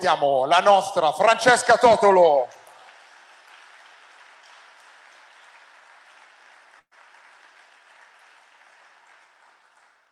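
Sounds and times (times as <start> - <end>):
speech: 0.0 - 2.6
audience applause: 2.5 - 10.1.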